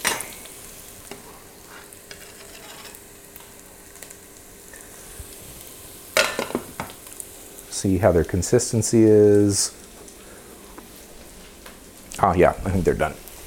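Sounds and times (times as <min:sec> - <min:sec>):
faint steady simmering hiss: 0:00.0 - 0:13.4
spoon scooping cooking lentils from a pot: 0:02.1 - 0:03.0
speech: 0:07.8 - 0:09.8, 0:12.2 - 0:13.2.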